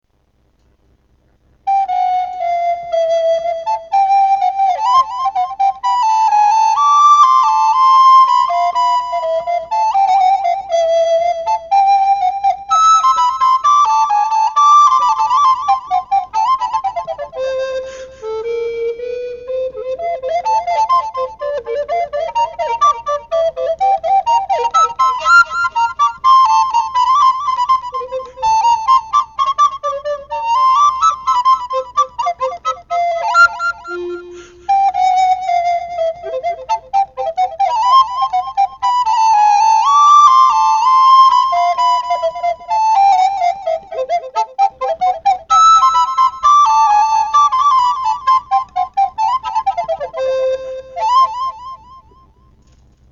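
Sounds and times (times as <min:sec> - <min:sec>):
polka music in alto: 0:01.7 - 0:52.1.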